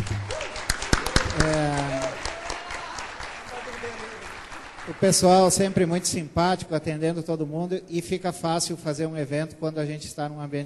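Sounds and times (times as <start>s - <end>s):
audience applause: 0.0s - 6.0s
speech: 1.4s - 1.8s, 5.0s - 10.6s.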